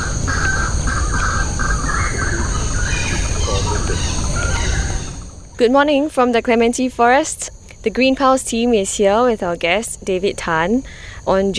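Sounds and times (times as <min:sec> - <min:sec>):
birds calling in raspy crow-like bursts: 0:00.0 - 0:05.6
insect-like hiss in tropical forest: 0:00.0 - 0:11.5
speech: 0:05.6 - 0:11.5.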